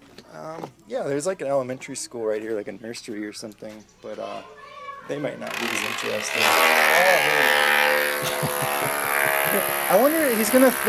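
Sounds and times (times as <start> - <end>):
speech: 0.4 - 10.8
drilling: 5.5 - 10.8
laughter: 7.9 - 10.4.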